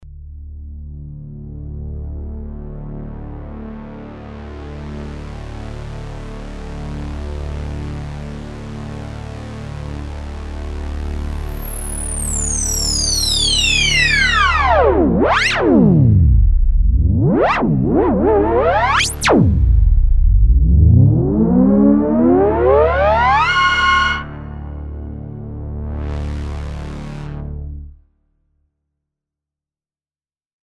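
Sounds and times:
MS20 lowpass filter synth: 0:08.7 - 0:28.0.

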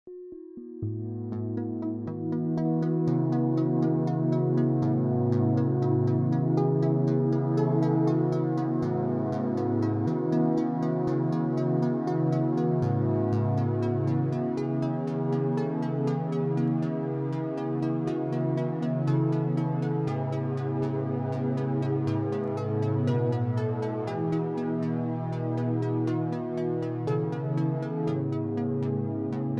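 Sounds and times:
synthesizer in quad mode: 0:00.1 - 0:29.5.

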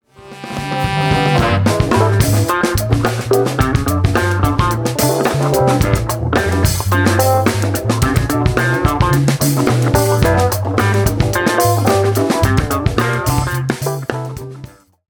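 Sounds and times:
guitar: 0:00.0 - 0:15.0.

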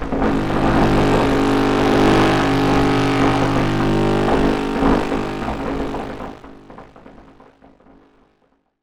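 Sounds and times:
Soma Ornament 8 controlling MI Rings synthesizer: 0:00.2 - 0:06.9.

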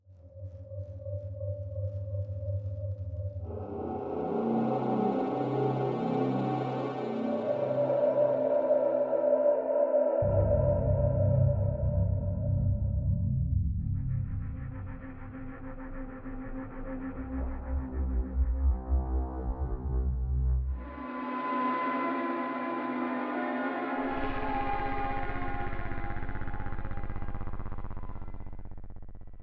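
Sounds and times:
ambience: 0:00.2 - 0:29.4.

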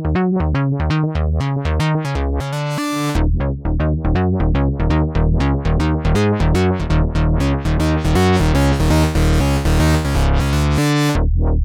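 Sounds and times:
synthesizer through preamp: 0:00.2 - 0:11.4.

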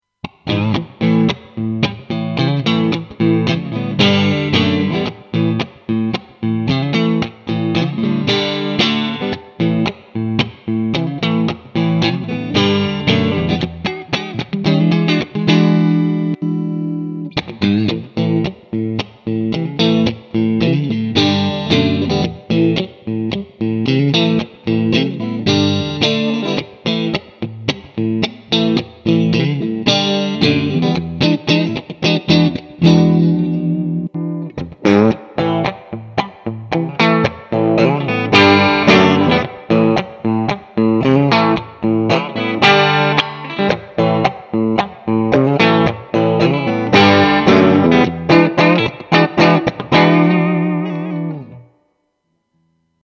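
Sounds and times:
clean electric guitar: 0:00.1 - 0:52.9.

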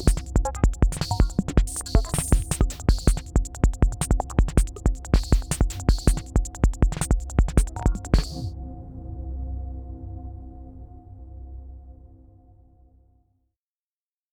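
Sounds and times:
Roland TR 8S drum machine pattern: 0:00.0 - 0:08.5.

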